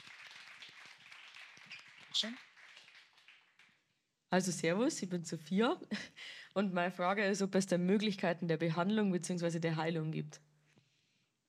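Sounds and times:
crowd applauding: 0.0s - 3.8s
speech: 2.2s - 2.5s, 4.3s - 10.5s.

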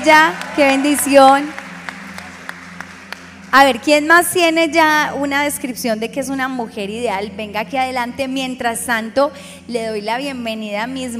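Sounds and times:
speech: 0.0s - 1.6s, 3.5s - 11.1s
audience applause: 0.0s - 3.4s.

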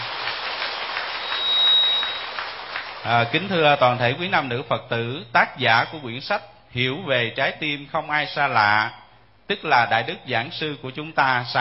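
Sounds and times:
audience applause: 0.0s - 3.5s
speech: 3.0s - 11.5s.

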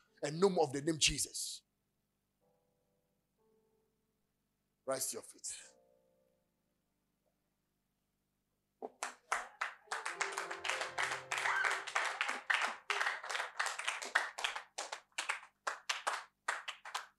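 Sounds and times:
speech: 0.2s - 1.6s, 4.9s - 5.7s
audience clapping: 8.8s - 17.1s.

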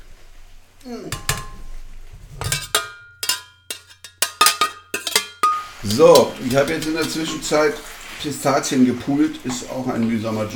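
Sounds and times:
speech: 0.8s - 1.4s, 5.8s - 10.5s
metal lid clattering onto a cooking pot of simmering liquid: 1.1s - 7.4s.

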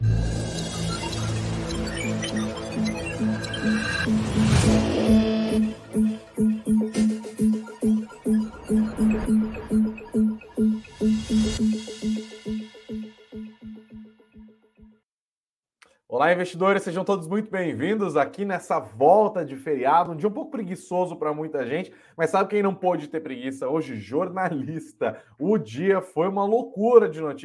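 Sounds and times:
sweeping whoosh: 0.0s - 12.7s
sustained synthetic tone of a news show intro jingle: 0.0s - 14.6s
pulsing electronic beats: 0.0s - 15.0s
speech: 16.3s - 27.4s.

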